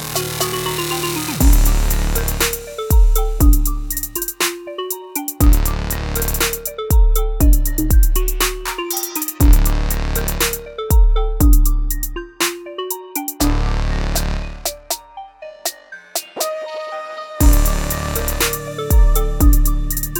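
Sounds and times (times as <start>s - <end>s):
trap beat on an Oberheim SEM synthesizer: 0.0s - 20.1s.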